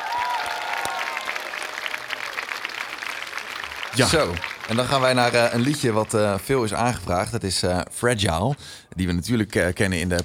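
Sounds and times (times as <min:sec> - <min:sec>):
audience applause: 0:00.0 - 0:06.9
speech: 0:04.0 - 0:10.2.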